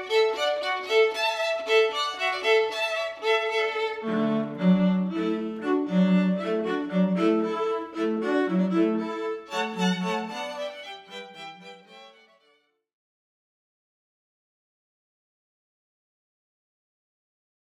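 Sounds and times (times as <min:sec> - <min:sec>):
string quartet playing a hornpipe: 0:00.0 - 0:12.2.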